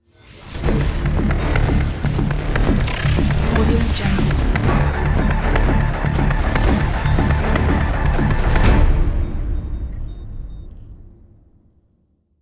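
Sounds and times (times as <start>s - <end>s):
news report logo jingle: 0.8s - 11.0s.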